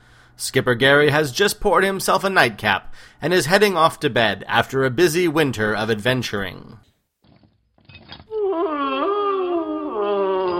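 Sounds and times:
speech: 0.4 - 6.9
ghostly moaning: 8.3 - 10.5.

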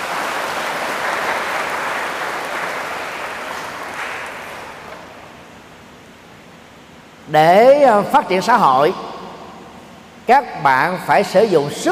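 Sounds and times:
applause from a large crowd: 0.0 - 5.0
speech: 7.3 - 9.1, 10.3 - 11.9.

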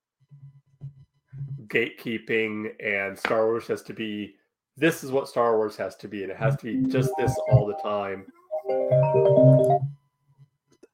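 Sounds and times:
speech: 1.7 - 10.0
phone ringtone electronic melody: 6.8 - 9.9.

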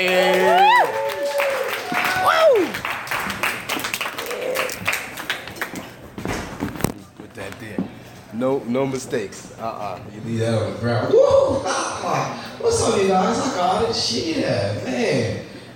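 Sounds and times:
crowd clapping and applause: 0.0 - 6.0
speech: 8.4 - 15.7.

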